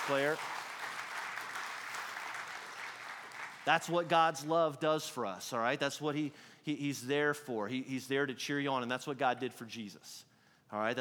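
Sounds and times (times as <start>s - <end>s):
room full of people clapping for a helper: 0.0s - 4.1s
speech: 0.1s - 0.6s, 3.6s - 10.9s.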